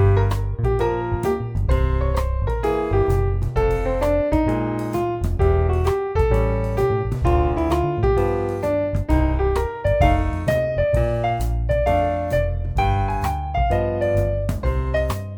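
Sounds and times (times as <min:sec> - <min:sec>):
piano playing a II V modulation: 0:00.0 - 0:15.3.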